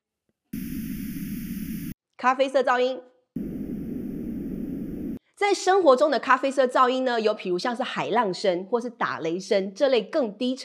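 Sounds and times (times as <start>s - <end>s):
pink noise: 0.6s - 1.9s, 3.4s - 5.2s
speech: 2.2s - 3.5s, 5.4s - 10.6s.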